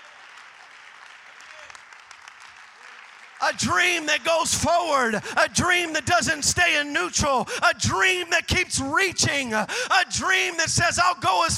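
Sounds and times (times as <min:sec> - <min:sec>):
people clapping: 0:00.0 - 0:05.8
speech: 0:03.5 - 0:11.5.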